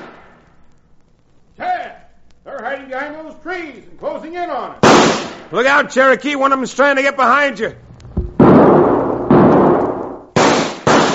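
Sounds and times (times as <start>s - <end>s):
carbine gunshot: 0.0s - 0.4s, 4.8s - 5.5s, 8.2s - 11.1s
speech: 2.6s - 7.8s.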